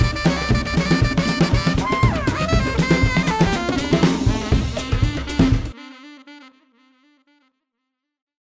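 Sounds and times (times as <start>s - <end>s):
world jazz music: 0.0s - 6.0s.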